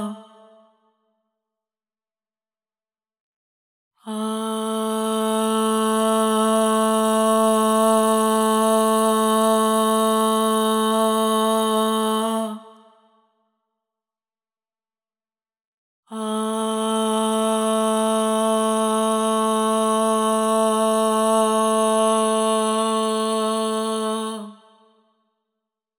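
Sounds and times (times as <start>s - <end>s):
voice singing ahh at 432 Hz with reverb: 0.0s - 0.8s, 4.0s - 13.0s, 16.1s - 24.9s.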